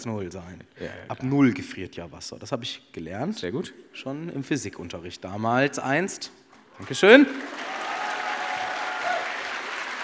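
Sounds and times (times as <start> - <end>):
speech: 0.0 - 7.8
applause: 6.8 - 10.0.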